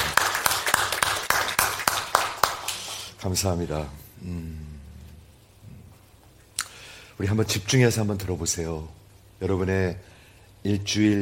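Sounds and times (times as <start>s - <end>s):
audience clapping hands: 0.0s - 3.2s
speech: 3.2s - 4.7s, 7.2s - 11.1s.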